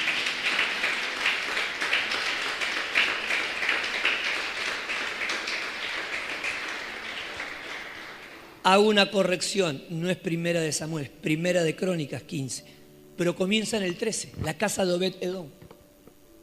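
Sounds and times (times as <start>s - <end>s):
audience applauding: 0.0s - 8.6s
speech: 8.7s - 15.7s.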